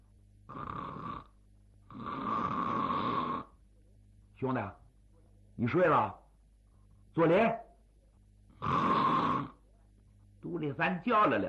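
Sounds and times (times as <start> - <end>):
storyteller imitating Zhang Zuolin snoring: 0.5 - 1.3, 1.9 - 3.5, 8.6 - 9.6
speech: 4.4 - 4.8, 5.6 - 6.2, 7.2 - 7.6, 10.5 - 11.4.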